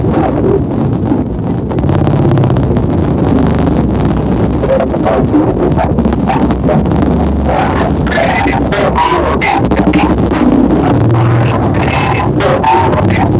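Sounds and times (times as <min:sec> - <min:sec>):
glitch noise: 0:00.0 - 0:13.3.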